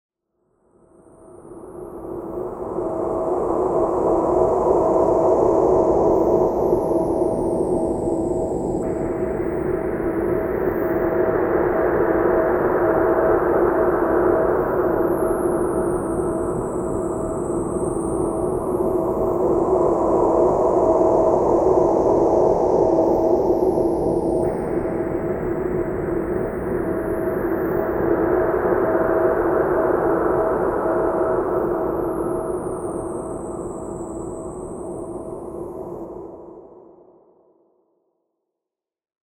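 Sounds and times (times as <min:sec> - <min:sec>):
ambience: 0:01.0 - 0:36.9.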